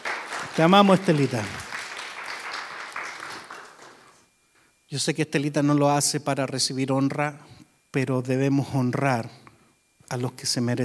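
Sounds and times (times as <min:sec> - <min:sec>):
audience applause: 0:00.0 - 0:04.2
speech: 0:00.6 - 0:01.6, 0:04.9 - 0:09.4, 0:10.1 - 0:10.8.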